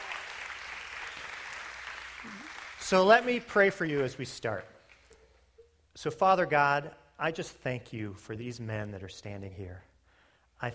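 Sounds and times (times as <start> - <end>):
church congregation clapping for fathers during a service: 0.0 - 5.1
speech: 2.2 - 4.7, 6.0 - 9.9, 10.6 - 10.7.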